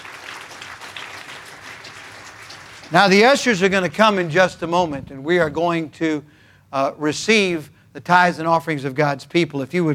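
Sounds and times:
audience applause: 0.0s - 3.4s
speech: 2.9s - 9.9s.

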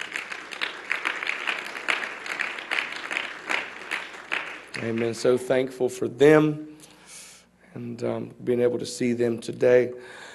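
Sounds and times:
audience applause: 0.0s - 5.2s
speech: 4.8s - 6.7s, 7.8s - 10.3s.

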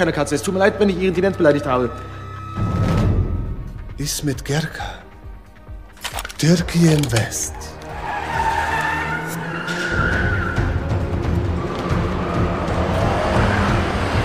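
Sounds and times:
speech: 0.0s - 2.8s, 4.0s - 5.0s, 6.4s - 7.8s
police car engine roaring: 7.6s - 14.2s
police car tires squealing in a skid: 7.6s - 14.2s.

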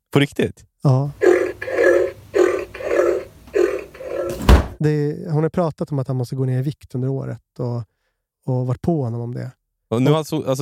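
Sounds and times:
speech: 0.1s - 1.2s, 4.8s - 10.6s
novelty diet pig gadget oinking from the fridge: 1.1s - 4.8s.

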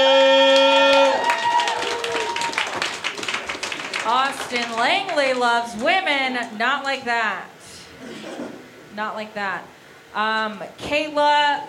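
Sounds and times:
audience applause at a comedy show introducing two performers: 0.0s - 5.5s
speech: 4.5s - 8.3s, 9.0s - 11.6s.

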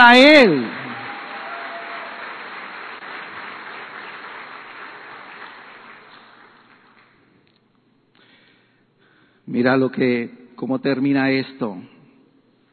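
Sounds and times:
speech: 0.0s - 0.8s, 9.5s - 11.9s
audience applause: 0.4s - 7.2s.

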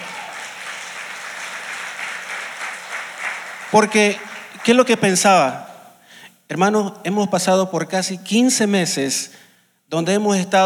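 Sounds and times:
audience applause: 0.0s - 5.2s
speech: 3.7s - 5.7s, 6.5s - 10.6s.

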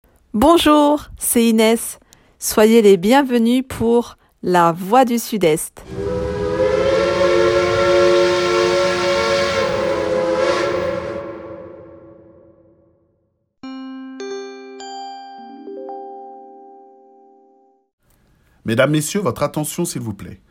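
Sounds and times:
speech: 0.3s - 6.2s, 18.7s - 20.4s
train departing: 5.8s - 12.7s.

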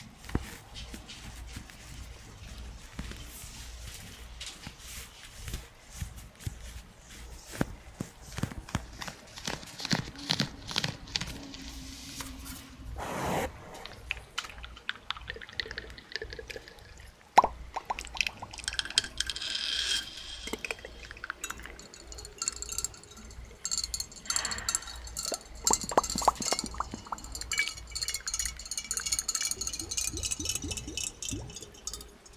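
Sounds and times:
soft rustles: 0.0s - 14.4s
breathy swishing sounds: 12.9s - 14.1s
bubbly plops: 13.8s - 19.0s, 29.6s - 32.2s
crisp tapping and clinking: 17.4s - 32.3s.

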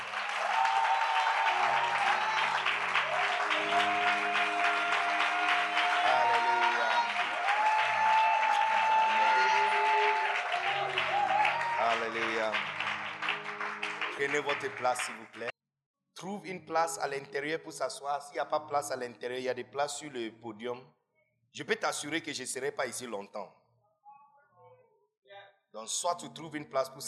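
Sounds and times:
audience applauding and cheering: 0.0s - 15.5s
speech: 14.2s - 15.5s, 16.2s - 23.6s, 25.7s - 27.0s.

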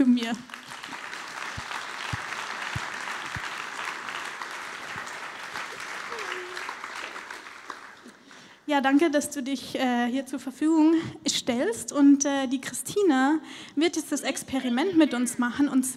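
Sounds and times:
speech: 0.0s - 0.8s, 8.7s - 15.9s
warm audience applause: 0.4s - 8.4s.

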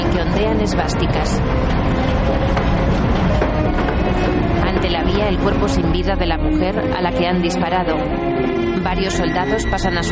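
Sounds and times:
train beginning to roll slowly away from a station platform: 0.0s - 10.1s
speech: 0.4s - 3.1s, 4.2s - 10.1s.

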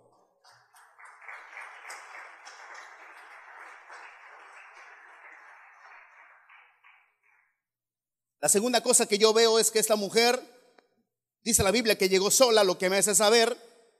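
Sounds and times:
audience applauding: 0.0s - 7.5s
speech: 8.4s - 10.5s, 11.4s - 13.7s.

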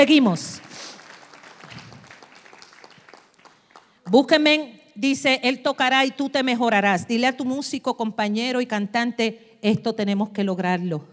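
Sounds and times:
speech: 0.0s - 0.7s, 4.1s - 11.1s
audience applause: 0.7s - 4.0s.

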